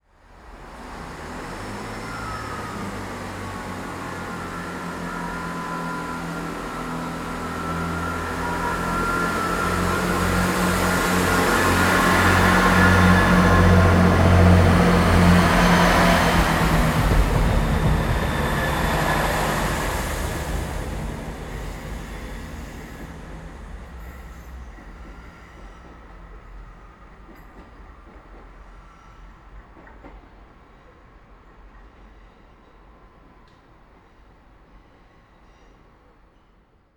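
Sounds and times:
train passing slowly right to left: 0:00.0 - 0:36.9.

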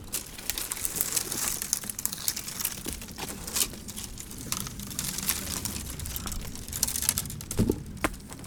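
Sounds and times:
crackling: 0:00.0 - 0:08.4.

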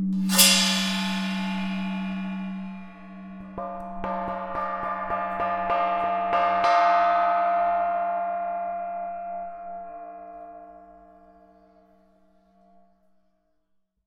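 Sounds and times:
gong: 0:00.2 - 0:10.2.

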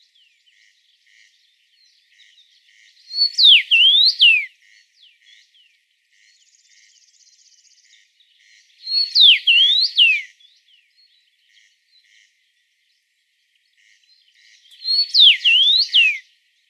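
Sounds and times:
Cassin's finch whistling: 0:03.2 - 0:04.5, 0:08.9 - 0:10.3, 0:14.7 - 0:16.2.

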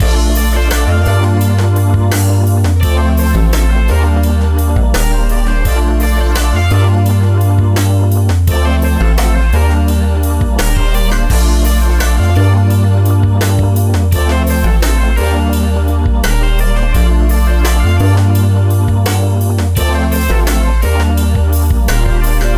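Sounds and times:
music loop: 0:00.0 - 0:22.5.

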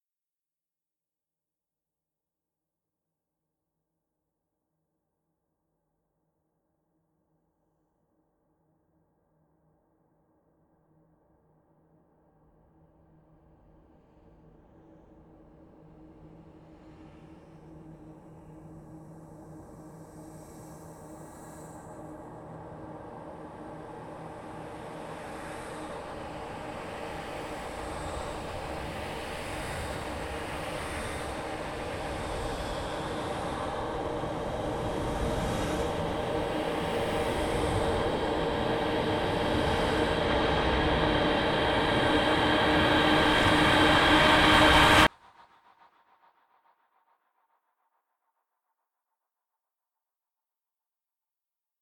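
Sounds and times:
horror music build-up: 0:25.8 - 0:45.1.

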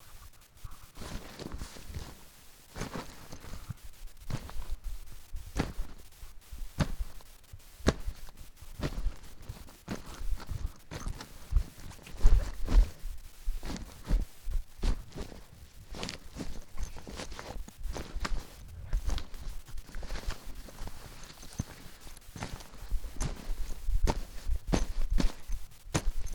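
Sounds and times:
bags rustling: 0:00.8 - 0:26.3.

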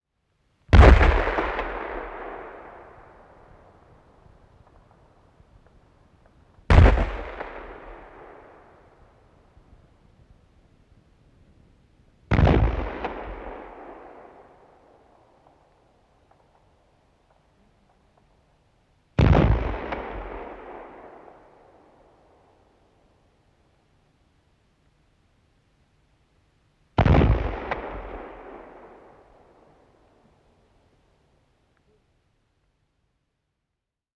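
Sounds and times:
76 mm big gun cannon single shots: 0:00.7 - 0:03.2, 0:06.7 - 0:08.8, 0:12.3 - 0:14.5, 0:19.2 - 0:21.5, 0:27.0 - 0:29.7.

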